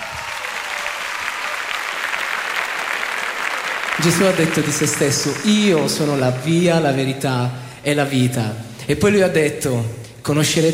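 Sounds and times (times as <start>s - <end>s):
audience applause: 0.0s - 7.2s
speech: 4.0s - 10.7s.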